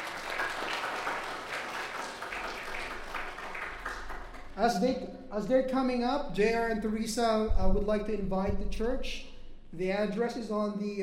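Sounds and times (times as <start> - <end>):
church audience applauding: 0.0 - 4.9
speech: 4.6 - 11.0.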